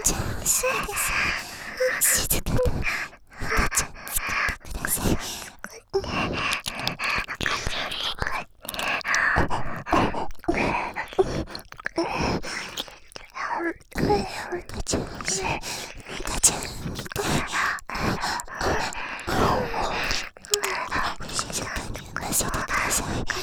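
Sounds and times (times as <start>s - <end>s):
person moaning: 0.0s - 1.2s
ear licking sounds: 0.0s - 23.4s.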